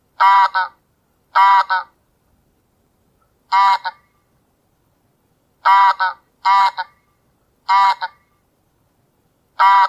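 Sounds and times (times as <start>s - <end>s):
wild goose: 0.2s - 1.9s, 3.5s - 4.0s, 5.6s - 7.0s, 7.7s - 8.2s, 9.6s - 9.8s.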